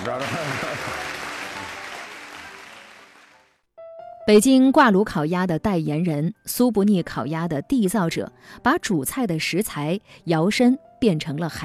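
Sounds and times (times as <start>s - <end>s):
crowd clapping: 0.0s - 3.6s
speech: 0.1s - 0.6s, 4.3s - 11.6s.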